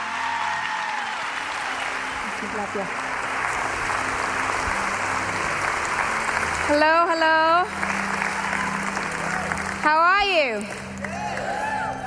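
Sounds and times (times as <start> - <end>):
church congregation applauding a welcome: 0.0 - 12.0
speech: 2.4 - 3.1, 6.7 - 8.2, 9.8 - 10.8.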